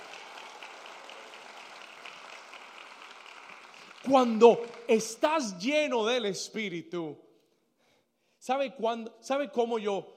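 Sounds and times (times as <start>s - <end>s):
crowd applauding: 0.0s - 5.3s
speech: 4.0s - 7.2s, 8.4s - 10.1s.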